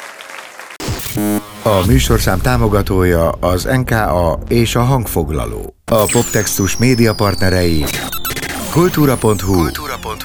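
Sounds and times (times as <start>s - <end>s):
applause: 0.0s - 1.2s
speech: 1.2s - 10.2s.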